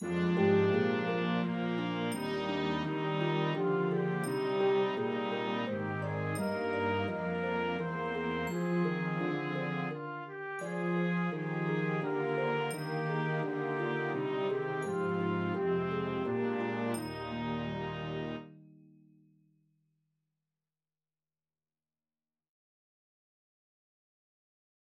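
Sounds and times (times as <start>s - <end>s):
trumpet: 0.0s - 18.6s.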